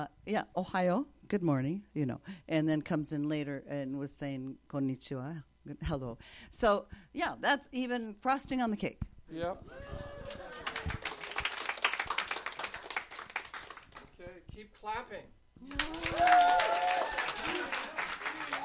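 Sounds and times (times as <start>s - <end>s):
speech: 0.0s - 11.0s, 14.6s - 17.2s
clapping: 10.2s - 14.1s, 15.7s - 18.6s.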